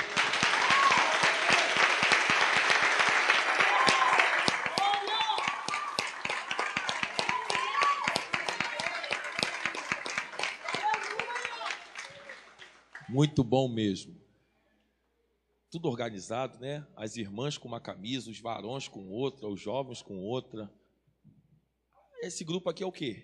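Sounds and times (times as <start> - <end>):
audience applause: 0.0 - 13.1
speech: 13.2 - 14.2, 15.8 - 20.8, 22.2 - 23.2.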